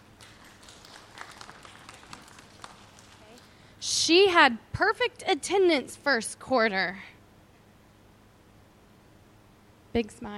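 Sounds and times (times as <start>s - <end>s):
round of applause from a group: 0.0s - 3.6s
speech: 4.0s - 7.1s, 10.0s - 10.3s.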